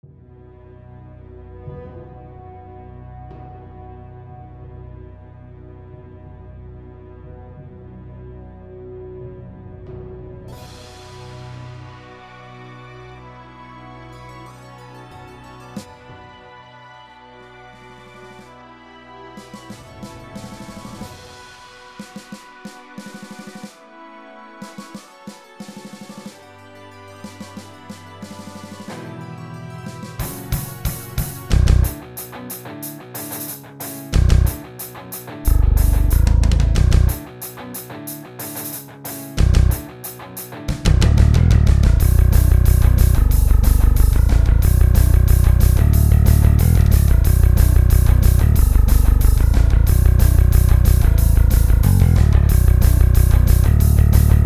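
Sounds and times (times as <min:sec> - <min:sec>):
drums: 0:10.5 - 0:12.1, 0:15.2 - 0:16.4, 0:19.4 - 0:23.8, 0:24.6 - 0:54.4.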